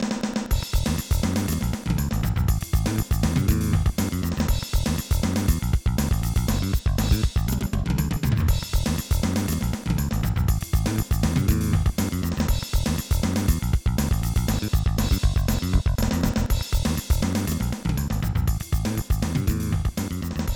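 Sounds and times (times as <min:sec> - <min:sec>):
bass: 0:00.5 - 0:20.5.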